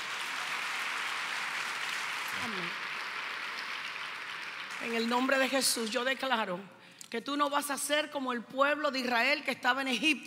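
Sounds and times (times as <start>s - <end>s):
audience applause: 0.0s - 5.8s
speech: 2.4s - 2.8s, 4.8s - 10.2s.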